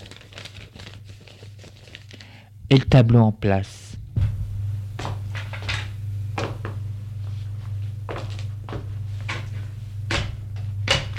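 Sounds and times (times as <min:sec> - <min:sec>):
paper being crumpled and slipped into a pocket: 0:00.0 - 0:02.5
low steady hum: 0:00.0 - 0:11.1
speech: 0:02.7 - 0:03.8.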